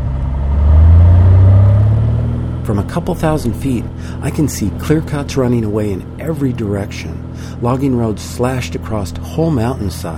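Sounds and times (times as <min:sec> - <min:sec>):
airplane engine drone in flight: 0:00.0 - 0:10.1
speech: 0:02.7 - 0:10.1.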